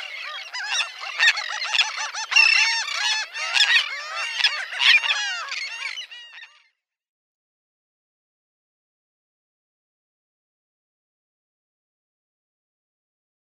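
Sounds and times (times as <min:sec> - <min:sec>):
Royal Tern calls during migration: 0:00.0 - 0:06.4.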